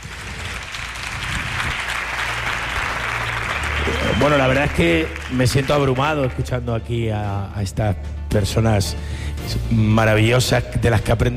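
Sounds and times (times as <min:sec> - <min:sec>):
audience applause: 0:00.0 - 0:06.4
speech: 0:04.2 - 0:11.3.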